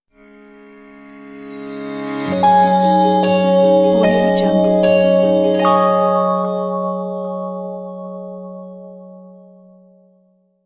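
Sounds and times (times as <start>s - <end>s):
dreamy logo sound: 2.1s - 9.8s.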